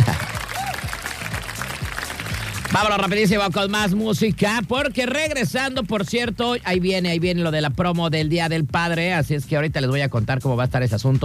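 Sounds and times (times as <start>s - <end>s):
applause: 0.0s - 4.0s
speech: 2.7s - 11.2s.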